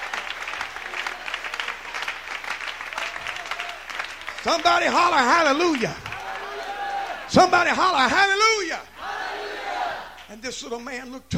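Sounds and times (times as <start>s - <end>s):
audience clapping hands: 0.0s - 7.6s
speech: 4.4s - 6.0s, 7.3s - 8.9s, 10.3s - 11.3s.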